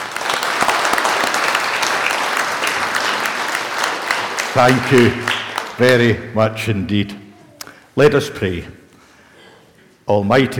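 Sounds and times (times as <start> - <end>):
crowd applause: 0.0 - 6.0
speech: 4.6 - 7.2, 8.0 - 8.8, 10.1 - 10.5.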